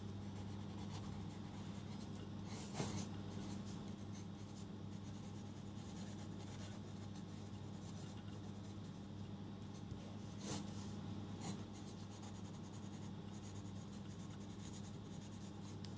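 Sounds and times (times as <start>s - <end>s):
low hum: 0.0s - 15.4s
pen scratching and rubbing on paper while re-writing notes: 0.2s - 9.1s, 10.3s - 10.8s, 11.4s - 15.8s.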